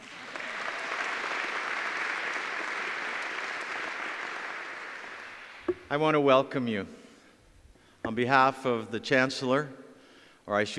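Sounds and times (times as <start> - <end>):
audience applause for a student pipe organist at an academic celebration: 0.0 - 5.9
speech: 5.9 - 7.0, 8.1 - 9.8, 10.4 - 10.7.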